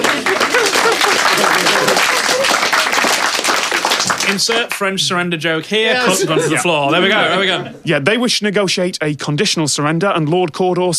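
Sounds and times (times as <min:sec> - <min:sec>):
laughter: 0:00.0 - 0:03.2, 0:05.9 - 0:07.8
sarcastic crowd applause: 0:00.0 - 0:04.9
speech: 0:04.3 - 0:10.9.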